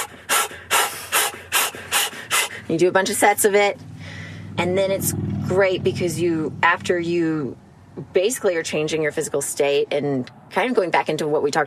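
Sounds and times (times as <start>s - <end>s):
forceful rhythmic breathing exercise: 0.0s - 4.6s
speech: 2.7s - 3.9s, 4.6s - 11.6s.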